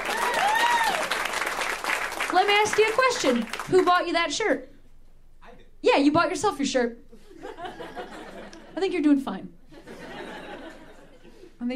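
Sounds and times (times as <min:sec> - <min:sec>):
whooping cheer: 0:00.0 - 0:01.4
crowd applause: 0:00.0 - 0:04.0
speech: 0:02.5 - 0:04.7, 0:05.8 - 0:07.0, 0:08.8 - 0:09.6, 0:11.6 - 0:11.7
laughter: 0:07.2 - 0:08.9, 0:09.7 - 0:11.6.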